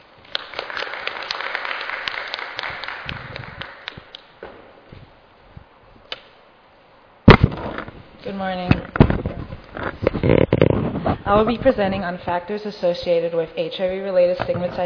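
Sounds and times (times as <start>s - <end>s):
audience applause: 0.3s - 4.2s
speech: 8.3s - 9.0s, 10.0s - 10.6s, 11.3s - 14.8s.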